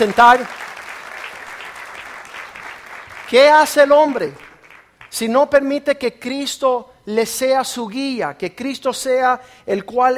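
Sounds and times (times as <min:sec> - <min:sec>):
speech: 0:00.0 - 0:00.7, 0:03.3 - 0:04.4, 0:05.1 - 0:10.1
audience applause for volunteers: 0:00.0 - 0:05.0.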